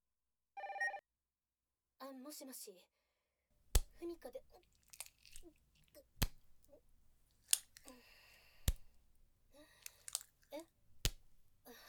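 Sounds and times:
telephone ringing with an incoming call: 0.6s - 1.0s
speech: 2.3s - 3.0s, 4.0s - 4.8s, 5.4s - 6.1s.

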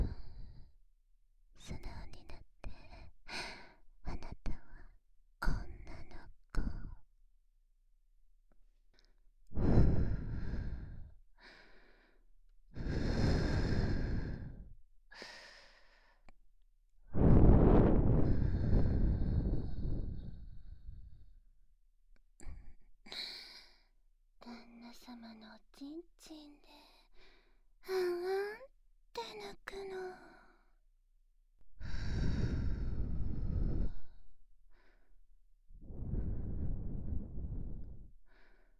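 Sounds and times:
breathing: 0.0s - 0.8s, 3.3s - 3.8s, 9.0s - 16.3s, 18.2s - 21.4s, 22.4s - 23.9s, 26.9s - 27.7s, 31.8s - 35.2s, 35.8s - 38.7s
whispering: 1.6s - 3.1s, 4.0s - 7.1s, 24.4s - 27.1s, 28.1s - 30.6s.

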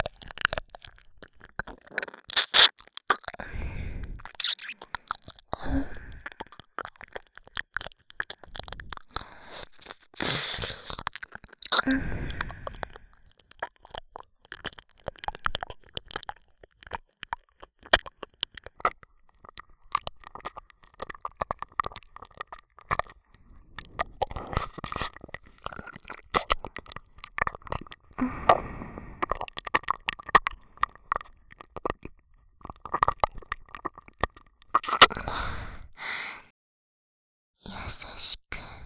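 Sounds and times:
seductive ear licking: 0.0s - 36.0s
hot breathing: 3.4s - 4.6s, 9.2s - 11.0s, 11.7s - 13.3s, 28.1s - 29.3s, 35.2s - 36.5s.

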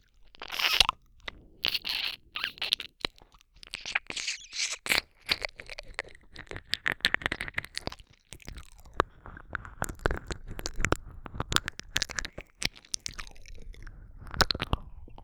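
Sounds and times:
ear licking ASMR: 0.2s - 15.2s
kissing: 0.4s - 0.9s, 1.6s - 3.0s, 3.6s - 5.5s.

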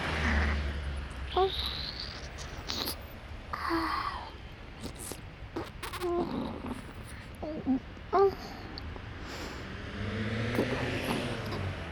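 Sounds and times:
national highway traffic: 0.0s - 11.9s
wet mouth sounds in right ear: 1.4s - 3.2s, 4.8s - 7.7s, 10.6s - 11.7s.

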